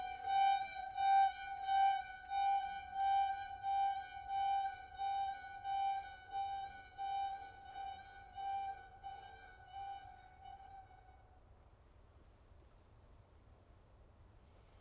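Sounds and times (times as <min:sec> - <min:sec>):
string quartet: 0:00.0 - 0:10.8.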